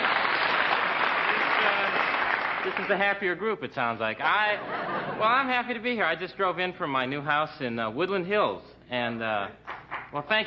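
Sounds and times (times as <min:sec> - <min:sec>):
applause: 0:00.0 - 0:03.1
speech: 0:02.6 - 0:10.4
laughter: 0:04.2 - 0:05.5.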